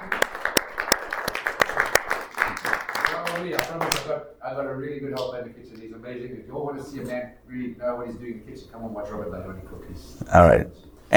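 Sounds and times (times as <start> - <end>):
audience applause: 0.0 - 4.1
speech: 3.4 - 11.1.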